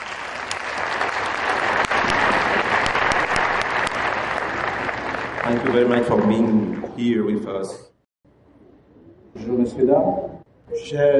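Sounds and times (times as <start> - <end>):
audience applause: 0.0 - 7.1
speech: 5.5 - 7.9, 9.4 - 11.1.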